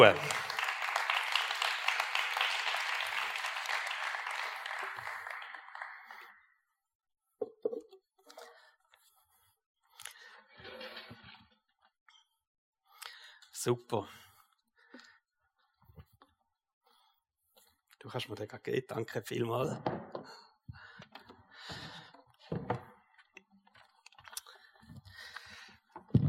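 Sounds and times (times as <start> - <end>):
speech: 0.0 - 0.3, 13.6 - 14.2, 18.1 - 20.4
audience applause: 0.0 - 6.4.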